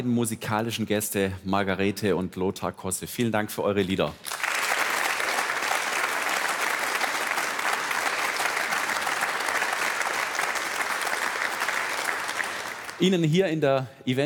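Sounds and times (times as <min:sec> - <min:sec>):
speech: 0:00.0 - 0:04.4, 0:13.0 - 0:14.2
audience applause: 0:04.2 - 0:13.1.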